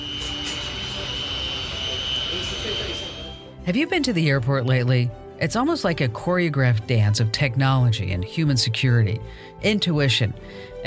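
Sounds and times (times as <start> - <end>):
jet aircraft engine roar at an airport: 0.0 - 3.4
jet engine high whine: 0.0 - 3.5
speech: 3.7 - 10.7.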